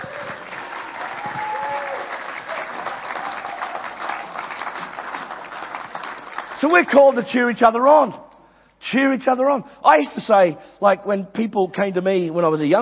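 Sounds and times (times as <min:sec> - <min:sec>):
audience applause: 0:00.0 - 0:06.8
speech: 0:06.6 - 0:08.2, 0:08.9 - 0:12.7.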